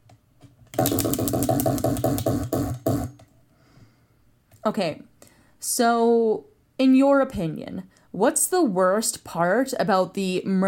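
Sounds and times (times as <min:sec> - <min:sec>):
question wheel spinning with ticking clicks: 0:00.8 - 0:03.2
speech: 0:04.7 - 0:10.6.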